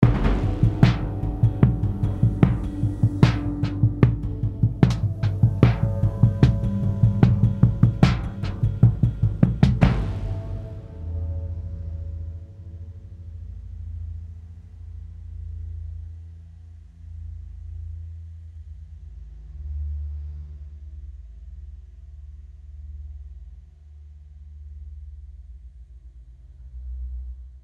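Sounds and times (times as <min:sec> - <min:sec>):
drum hits: 0:00.0 - 0:11.0.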